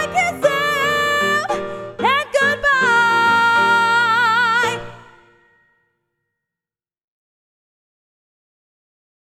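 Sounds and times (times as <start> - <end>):
piano: 0.0 - 6.0.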